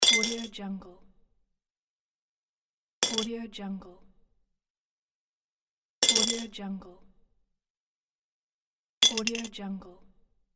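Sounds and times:
coin dropping into a jar of coins: 0.0s - 0.5s, 3.0s - 3.3s, 6.0s - 6.5s, 9.0s - 9.5s.

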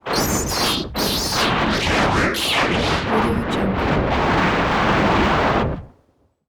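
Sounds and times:
energy distortion effect: 0.0s - 5.9s.

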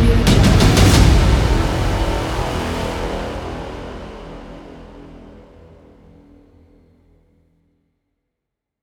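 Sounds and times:
action trailer music: 0.0s - 6.3s.

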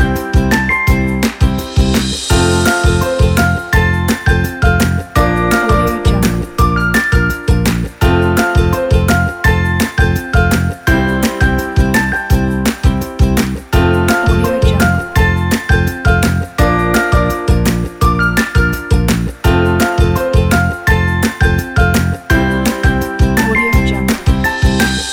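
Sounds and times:
happy upbeat music: 0.0s - 25.1s.

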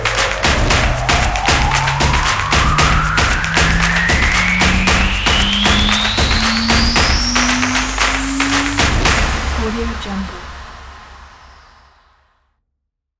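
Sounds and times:
stomping promo beat: 0.0s - 10.9s.

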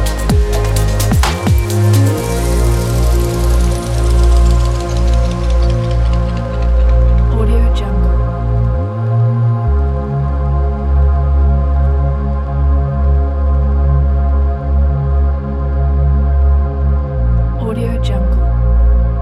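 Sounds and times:
futuristic ambient soundscape: 0.0s - 19.2s.

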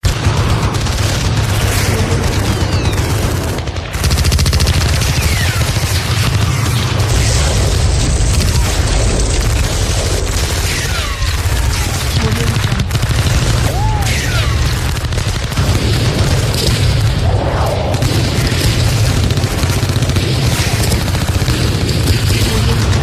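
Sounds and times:
war battle ambience: 0.0s - 23.0s.

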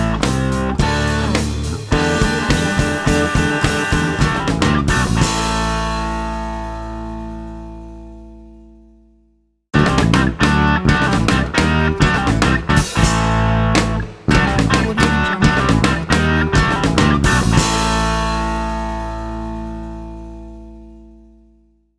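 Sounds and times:
vintage rock music: 0.0s - 7.9s, 9.8s - 21.0s.

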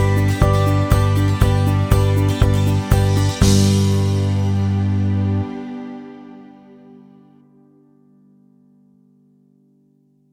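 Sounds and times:
happy folk music: 0.0s - 7.3s.

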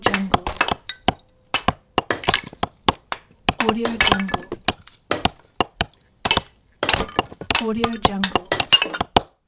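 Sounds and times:
building demolition: 0.1s - 9.4s.

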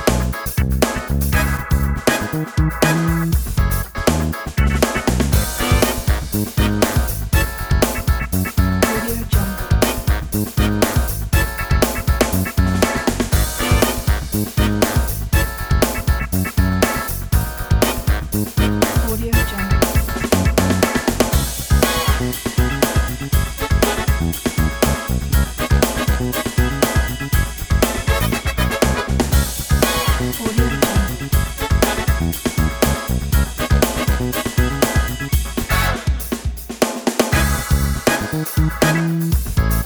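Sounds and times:
jazz funk beat: 0.0s - 39.8s.

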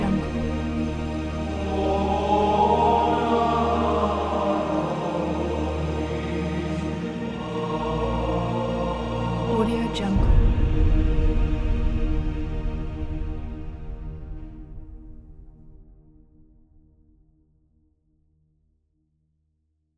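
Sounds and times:
Gregorian chant: 0.0s - 14.9s.

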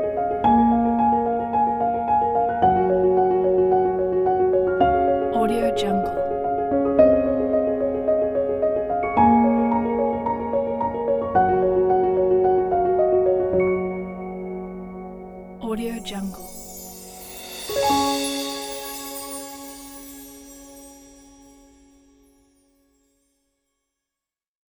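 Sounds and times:
positive emotional piano: 0.0s - 23.1s
orchestra: 16.1s - 22.0s.

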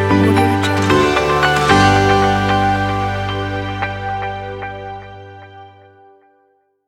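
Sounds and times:
upbeat corporate ident: 0.1s - 4.6s.

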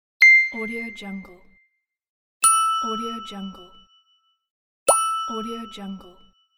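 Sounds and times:
ding: 0.2s - 0.9s, 2.4s - 6.5s.

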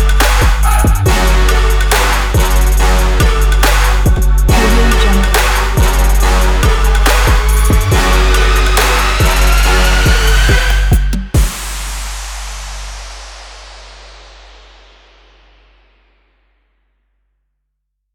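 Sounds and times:
trap beat: 0.0s - 11.8s.

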